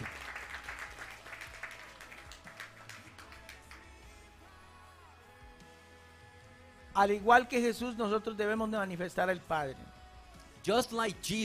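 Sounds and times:
audience applause: 0.0 - 3.8
speech: 7.0 - 9.9, 10.6 - 11.4.

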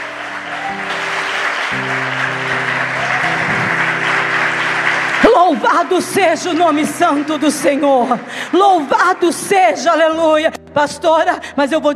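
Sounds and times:
sustained organ or keyboard chords: 0.0 - 9.5
audience applause: 0.0 - 9.7
speech: 5.5 - 11.9.

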